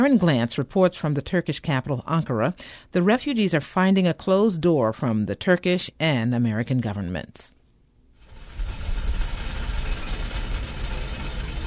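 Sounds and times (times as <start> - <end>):
speech: 0.0 - 7.6
tea boiling on a stove: 8.2 - 11.6.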